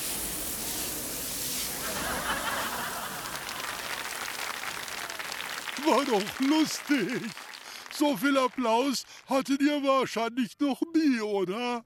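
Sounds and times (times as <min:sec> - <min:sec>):
water spraying from a garden hose: 0:00.0 - 0:03.4
laughter: 0:01.7 - 0:05.2, 0:05.8 - 0:07.4
speech: 0:05.8 - 0:07.4, 0:08.0 - 0:11.8.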